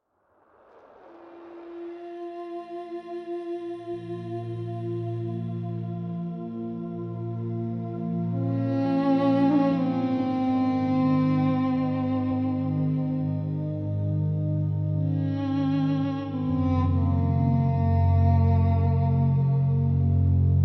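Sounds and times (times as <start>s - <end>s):
music: 0.0s - 20.6s.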